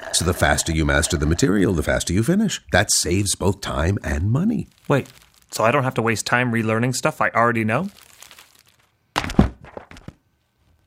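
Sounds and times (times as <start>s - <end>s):
speech: 0.2s - 8.1s
book being knocked over: 9.2s - 10.2s.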